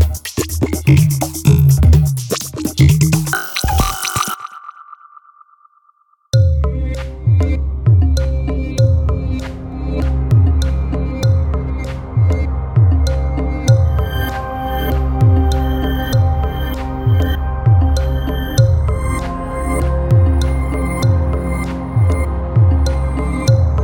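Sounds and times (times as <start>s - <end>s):
urban percussion grooves: 0.0s - 5.3s, 6.3s - 23.8s.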